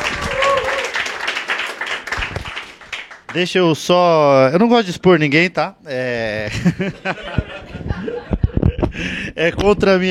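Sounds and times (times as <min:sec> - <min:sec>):
audience cheering: 0:00.0 - 0:02.6
audience applause: 0:00.0 - 0:03.4
speech: 0:03.3 - 0:08.2, 0:09.0 - 0:10.0
laughter: 0:06.4 - 0:09.1.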